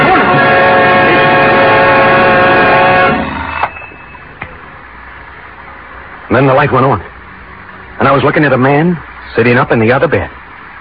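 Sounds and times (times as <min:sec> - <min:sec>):
alarm clock ringing: 0:00.3 - 0:04.4
speech: 0:06.3 - 0:07.1, 0:08.0 - 0:10.4.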